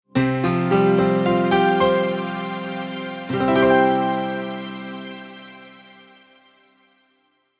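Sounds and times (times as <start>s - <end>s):
multimedia musical logo: 0.2s - 7.1s.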